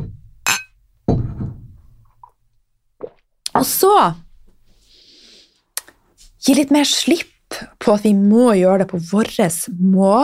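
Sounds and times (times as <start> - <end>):
glasses clinking in a toast: 0.4 - 1.3
speech: 3.6 - 4.2, 6.4 - 10.2.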